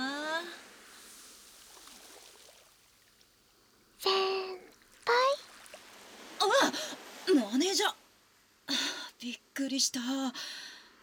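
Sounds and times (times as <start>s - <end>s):
gentle ocean waves washing onto a sandy beach: 0.0s - 8.5s
speech: 7.3s - 8.0s, 9.2s - 10.7s.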